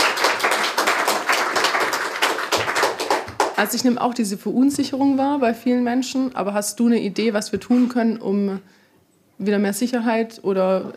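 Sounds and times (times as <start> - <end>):
audience clapping: 0.0 - 3.8
speech: 3.6 - 8.8, 9.4 - 10.9.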